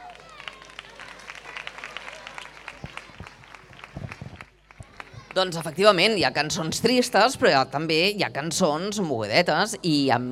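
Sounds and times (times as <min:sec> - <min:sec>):
audience applause: 0:00.0 - 0:05.4
speech: 0:05.4 - 0:10.3.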